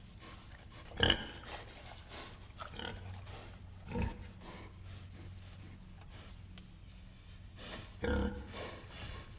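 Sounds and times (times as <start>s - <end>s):
pigs grunting in a barn in the countryside: 0.9s - 1.6s, 2.6s - 4.8s, 8.0s - 8.9s.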